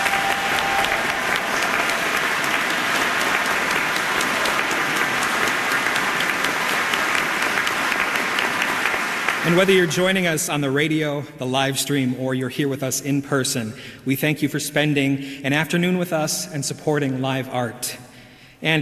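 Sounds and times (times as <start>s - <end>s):
audience round of applause: 0.0s - 10.0s
speech: 9.5s - 18.8s.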